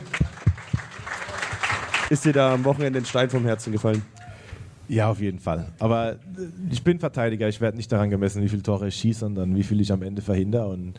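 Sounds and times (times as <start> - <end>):
short applause: 0.0 - 4.4
speech: 2.1 - 4.2, 4.9 - 10.9.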